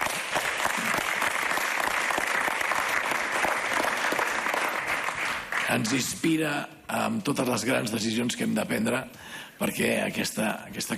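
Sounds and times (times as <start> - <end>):
audience applause: 0.0 - 6.0
speech: 5.7 - 10.9.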